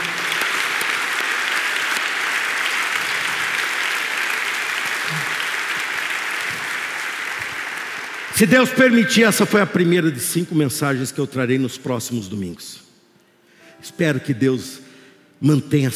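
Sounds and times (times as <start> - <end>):
church audience applauding: 0.0 - 9.0
speech: 8.4 - 12.9, 13.8 - 14.8, 15.4 - 15.9.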